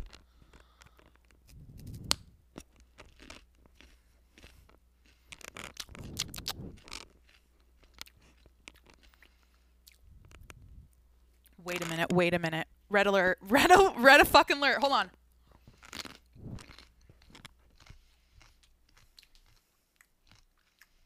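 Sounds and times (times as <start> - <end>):
person chewing food: 0.0 - 11.9, 15.2 - 21.0
speech: 11.7 - 15.2.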